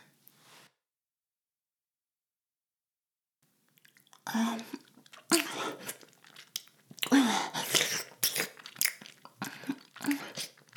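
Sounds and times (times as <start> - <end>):
ASMR ear licking sounds: 3.8 - 10.7.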